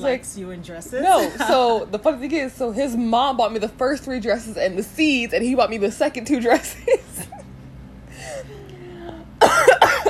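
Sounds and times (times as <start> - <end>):
speech: 0.0 - 7.3
woman coughing and choking: 9.4 - 10.0.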